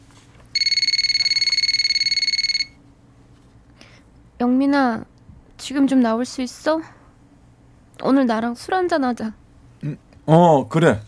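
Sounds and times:
phone ringing: 0.5s - 2.8s
speech: 4.4s - 7.0s, 8.0s - 11.0s.

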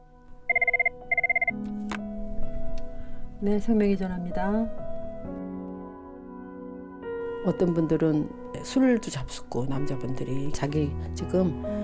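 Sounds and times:
telephone ringing: 0.5s - 1.6s
speech: 3.4s - 4.8s, 7.4s - 11.8s.

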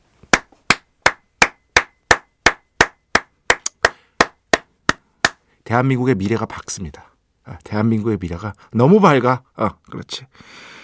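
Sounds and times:
hand clapping: 0.3s - 5.4s
speech: 5.7s - 10.8s.

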